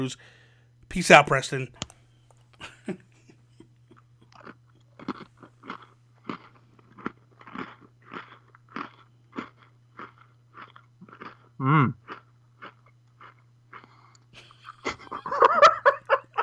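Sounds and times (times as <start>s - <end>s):
speech: 0.0s - 1.9s, 2.6s - 3.0s, 11.6s - 12.0s
person chewing crunchy food: 3.6s - 14.4s
laughter: 14.4s - 16.4s.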